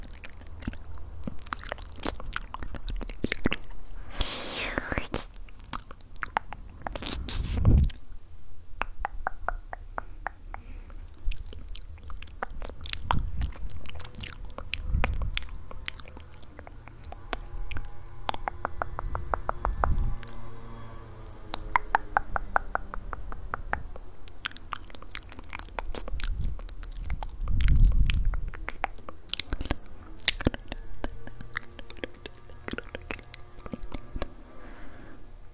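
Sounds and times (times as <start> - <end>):
bites and crunchy chewing: 0.0 - 3.8, 11.1 - 18.5, 24.3 - 34.4
wet mouth clicks: 0.0 - 8.0, 8.8 - 20.4, 21.5 - 34.4.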